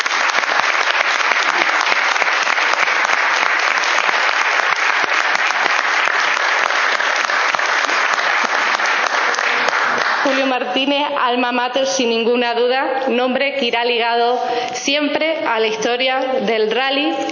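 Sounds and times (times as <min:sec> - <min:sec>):
audience applause: 0:00.0 - 0:10.5
speech: 0:10.8 - 0:17.3.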